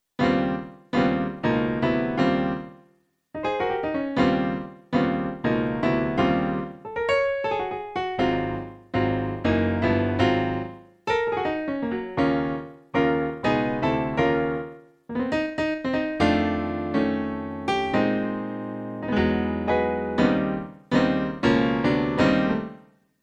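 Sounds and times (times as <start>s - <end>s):
piano: 0.0s - 23.0s.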